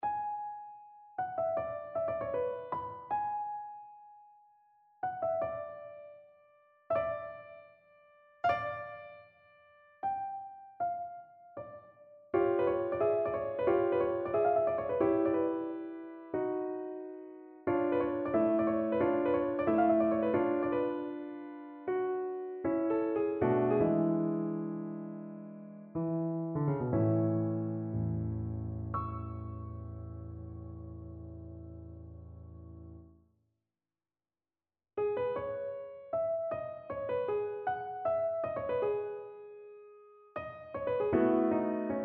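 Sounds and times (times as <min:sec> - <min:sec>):
piano: 0:00.0 - 0:33.2, 0:35.0 - 0:42.0.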